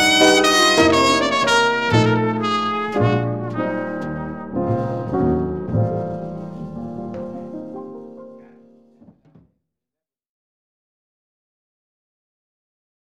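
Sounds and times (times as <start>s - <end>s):
trumpet melodies: 0.0s - 7.8s.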